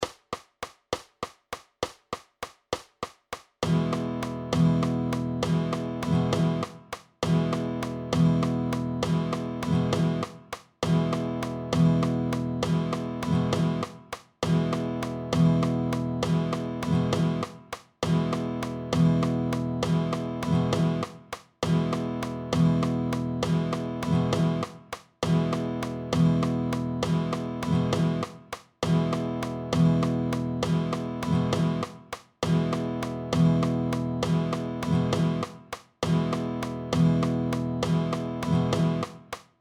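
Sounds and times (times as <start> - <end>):
12/8 strum pattern: 3.4 - 39.4.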